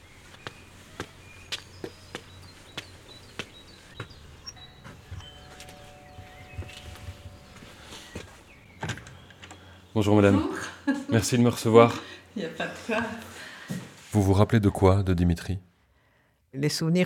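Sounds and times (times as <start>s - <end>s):
footsteps up steps: 0.0s - 9.7s
doorbell ringing: 4.5s - 9.4s
speech: 10.0s - 13.3s, 14.1s - 15.7s, 16.5s - 17.0s.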